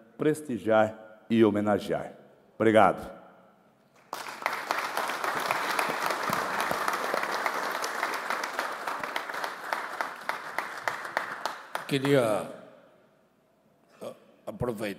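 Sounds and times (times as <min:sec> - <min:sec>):
speech: 0:00.2 - 0:03.2, 0:11.9 - 0:12.6, 0:14.6 - 0:14.9
applause in a legislative chamber: 0:03.9 - 0:12.5.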